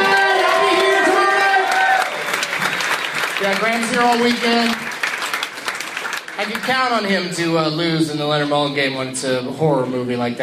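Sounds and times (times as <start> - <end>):
audience cheering: 0.0 - 5.2
audience applause: 0.0 - 7.2
speech: 3.4 - 4.8, 6.4 - 10.4.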